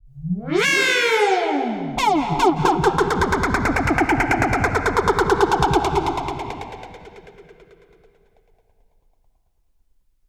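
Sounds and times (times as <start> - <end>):
sweeping effect: 0.4 - 7.8.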